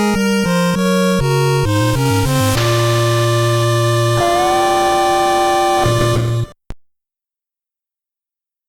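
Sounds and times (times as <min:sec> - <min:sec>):
chiptune remix: 0:00.0 - 0:06.6.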